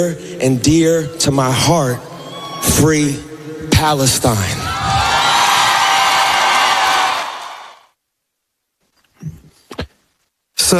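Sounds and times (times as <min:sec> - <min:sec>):
speech: 0:00.0 - 0:04.7
stadium crowd cheering: 0:02.1 - 0:02.8, 0:04.4 - 0:07.9.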